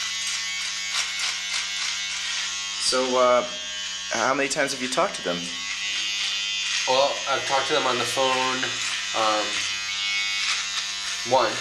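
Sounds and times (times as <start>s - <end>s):
electric razor buzzing while shaving: 0.0s - 11.6s
speech: 2.9s - 5.6s, 6.9s - 9.7s, 11.2s - 11.6s.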